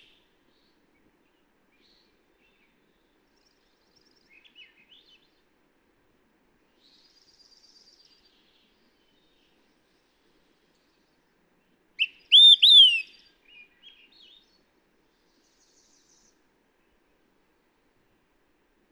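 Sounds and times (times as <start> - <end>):
Olive-sided Flycatcher calling: 12.0 - 13.2.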